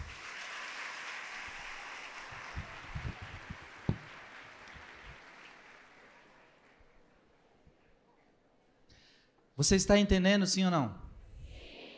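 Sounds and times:
audience applause: 0.0 - 7.0
speech: 9.6 - 11.0.

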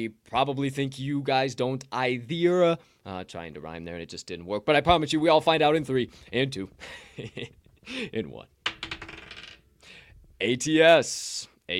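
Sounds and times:
speech: 0.0 - 8.6, 10.4 - 11.7
wild card die rolled: 8.6 - 9.6.

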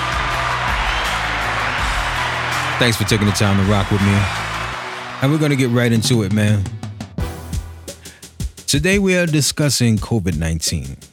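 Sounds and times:
crowd clapping: 0.0 - 6.6
speech: 2.8 - 4.4, 5.2 - 6.8, 8.7 - 11.1.

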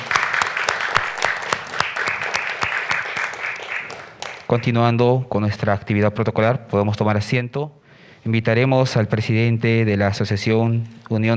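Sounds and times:
audience applause: 0.0 - 4.8
speech: 4.5 - 11.3.

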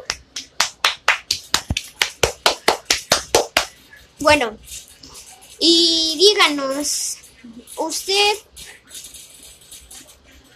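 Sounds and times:
applause: 0.0 - 3.7
speech: 4.2 - 4.9, 5.6 - 7.2, 7.8 - 8.5.

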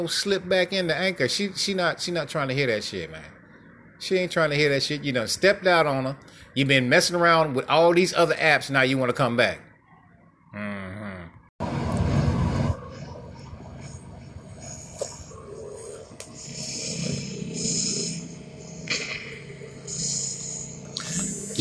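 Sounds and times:
speech: 0.0 - 3.4, 4.0 - 9.7
helicopter gunship flying: 11.6 - 21.5.

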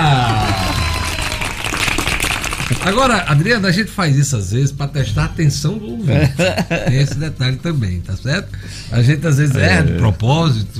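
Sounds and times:
round of applause: 0.0 - 3.3
speech: 2.8 - 10.7
laughter: 6.1 - 7.4.

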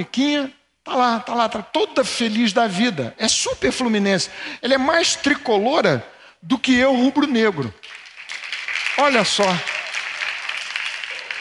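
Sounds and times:
speech: 0.0 - 8.0, 9.0 - 9.7
audience applause: 7.8 - 11.3.

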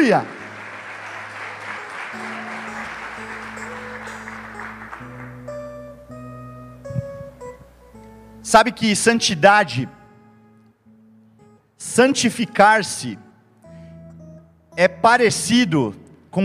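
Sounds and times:
audience applause: 0.0 - 5.6
sustained keyboard chords: 0.0 - 16.4
speech: 0.1 - 0.4, 8.5 - 10.0, 11.8 - 13.2, 14.8 - 16.4.

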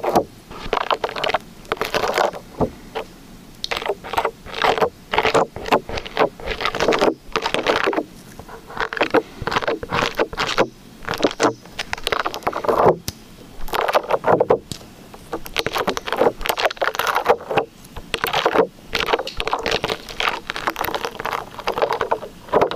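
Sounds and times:
liquid slime squished and stretched: 0.0 - 22.7.

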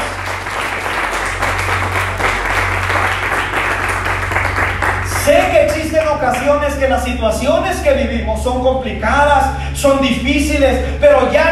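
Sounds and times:
applause: 0.0 - 6.4
speech: 6.2 - 11.4.

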